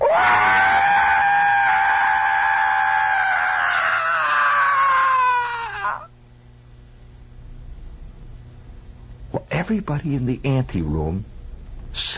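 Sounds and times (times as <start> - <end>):
person imitating a scream: 0.0 - 6.1
speech: 9.7 - 11.3, 12.0 - 12.1.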